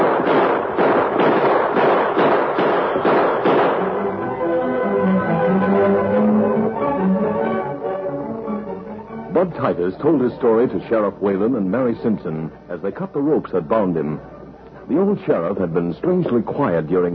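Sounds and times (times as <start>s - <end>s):
gunshots during an old West showdown: 0.0s - 4.2s
sustained musical tones: 3.8s - 11.9s
speech: 9.4s - 17.1s.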